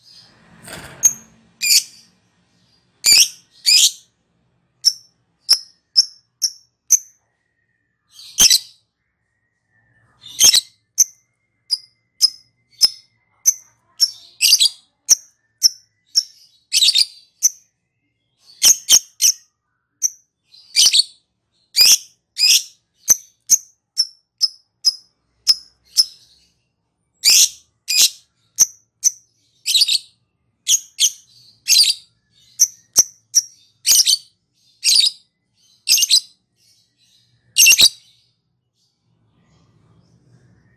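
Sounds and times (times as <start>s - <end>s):
lovebird high chirps: 1.0s - 4.1s, 4.8s - 17.7s, 18.4s - 26.6s, 27.2s - 38.3s.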